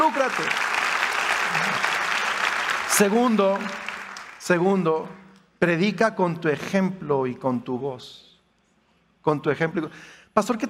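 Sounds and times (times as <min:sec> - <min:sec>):
church audience applauding: 0:00.0 - 0:04.6
speech: 0:00.3 - 0:00.7, 0:02.9 - 0:08.3, 0:09.2 - 0:10.6.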